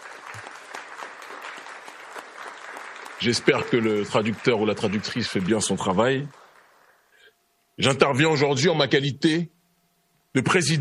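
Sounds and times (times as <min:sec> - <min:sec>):
audience applause: 0:00.0 - 0:07.1
speech: 0:03.2 - 0:06.4, 0:07.8 - 0:09.6, 0:10.3 - 0:10.7.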